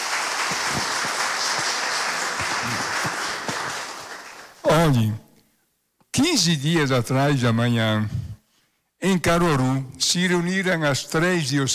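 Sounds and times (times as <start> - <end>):
audience applause: 0.0 - 4.6
speech: 4.8 - 5.2, 6.2 - 8.2, 9.0 - 11.7.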